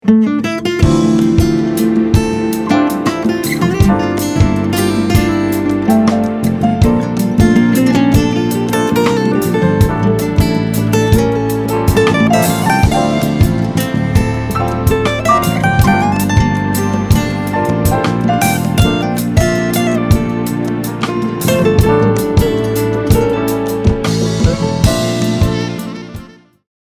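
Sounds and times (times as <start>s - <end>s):
guitar solo: 0.0s - 26.4s.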